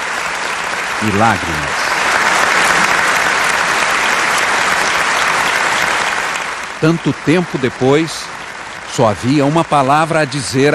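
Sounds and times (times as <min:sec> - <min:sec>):
long applause: 0:00.0 - 0:10.7
speech: 0:01.0 - 0:01.7, 0:06.8 - 0:10.7.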